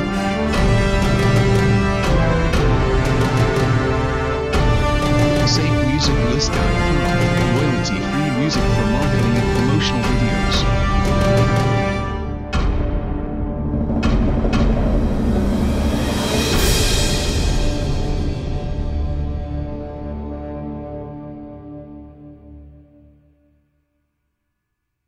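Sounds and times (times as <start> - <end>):
heroic drums: 0.0 - 19.2.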